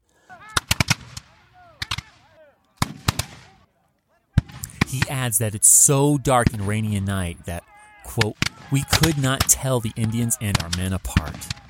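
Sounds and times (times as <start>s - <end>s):
people shouting: 0.3s - 2.7s, 3.4s - 11.6s
continuous gunfire in a night battle: 0.5s - 3.7s, 4.4s - 5.3s, 8.2s - 11.6s
speech: 4.9s - 11.6s.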